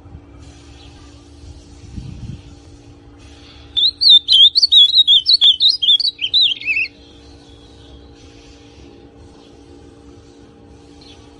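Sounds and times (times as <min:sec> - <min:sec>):
ultramarine grosbeak song: 0:03.6 - 0:08.1.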